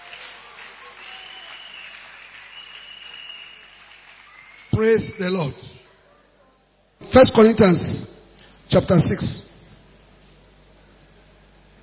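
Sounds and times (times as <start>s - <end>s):
hand clapping: 0.0s - 4.8s
speech: 4.8s - 5.8s, 7.1s - 8.1s, 8.7s - 9.4s.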